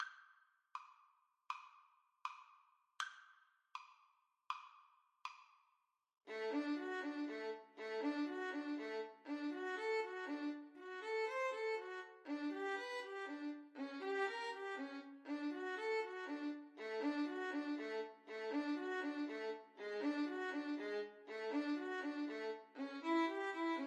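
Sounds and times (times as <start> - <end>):
violin duet: 6.3 - 23.8.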